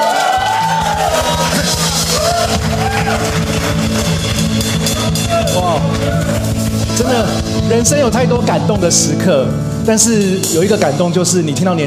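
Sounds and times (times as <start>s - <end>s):
whoops and yells: 0.0s - 3.3s
crowd clapping: 0.0s - 6.9s
speech: 7.7s - 11.8s.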